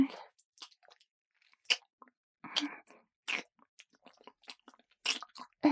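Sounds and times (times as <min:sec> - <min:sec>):
chewing and crunching hot, hard food: 0:00.1 - 0:05.6.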